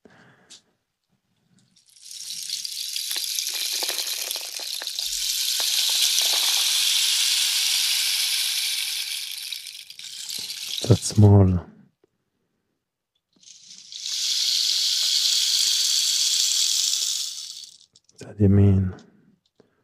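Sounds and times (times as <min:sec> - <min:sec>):
rain stick shaken with pattering grains: 0:01.8 - 0:11.3, 0:13.4 - 0:18.1
speech: 0:10.9 - 0:11.7, 0:18.4 - 0:19.1.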